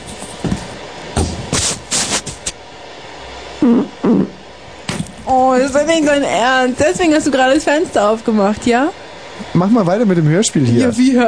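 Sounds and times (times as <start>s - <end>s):
fart: 3.6s - 4.4s
speech: 3.6s - 4.4s, 5.3s - 11.2s.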